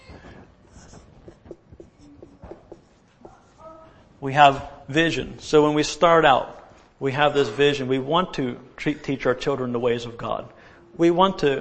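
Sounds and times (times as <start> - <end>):
pen scratching a quick note on paper: 0.7 - 3.5
speech: 4.2 - 11.5.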